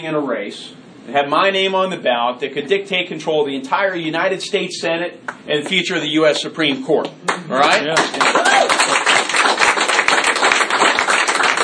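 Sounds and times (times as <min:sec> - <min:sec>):
speech: 0:00.0 - 0:08.4
audience applauding: 0:07.3 - 0:11.6.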